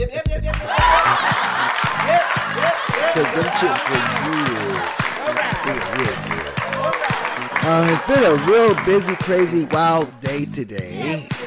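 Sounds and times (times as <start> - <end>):
crowd cheering: 0.5 - 10.4
laughter: 0.7 - 10.2
speech: 8.0 - 11.2.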